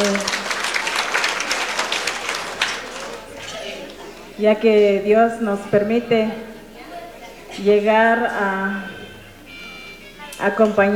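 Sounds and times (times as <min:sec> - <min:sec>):
audience applause: 0:00.0 - 0:04.4
laughter: 0:00.0 - 0:04.8, 0:06.6 - 0:08.1
speech: 0:04.4 - 0:06.5, 0:07.6 - 0:09.0, 0:10.4 - 0:10.9.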